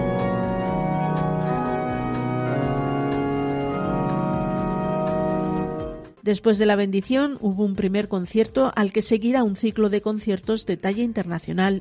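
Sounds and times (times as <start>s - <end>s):
restored Epistle pipe organ of Granada Cathedral sounding a sustained chord: 0.0s - 6.2s
speech: 6.3s - 11.8s.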